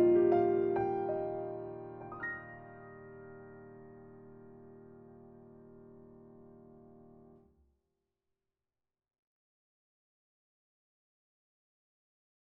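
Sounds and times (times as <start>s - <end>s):
piano arrangement: 0.0s - 7.4s.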